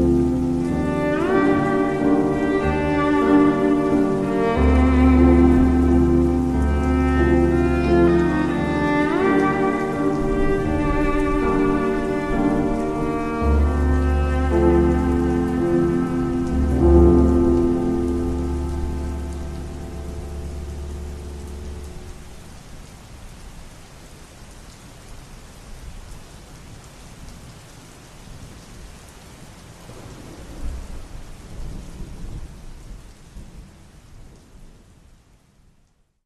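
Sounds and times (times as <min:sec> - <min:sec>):
slowed down music: 0:00.0 - 0:22.6
rain: 0:00.0 - 0:36.2.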